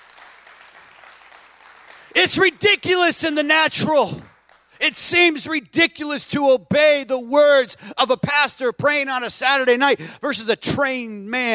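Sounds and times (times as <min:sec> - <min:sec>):
audience hand clapping: 0:00.0 - 0:04.9
speech: 0:02.2 - 0:11.5.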